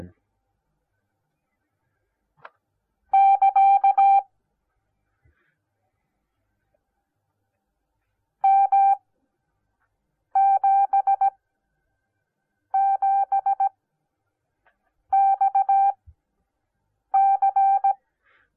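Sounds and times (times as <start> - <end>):
morse code beeps: 3.1 - 4.3, 8.5 - 9.0, 10.4 - 11.3, 12.7 - 13.7, 15.1 - 16.0, 17.1 - 18.0.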